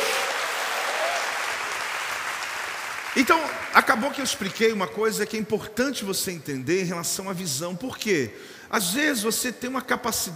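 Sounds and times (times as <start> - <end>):
audience applauding: 0.0 - 4.8
speech: 3.2 - 10.3.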